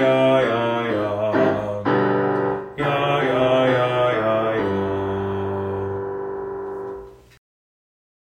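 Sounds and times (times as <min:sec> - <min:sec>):
five-note descending pattern: 0:01.1 - 0:07.2.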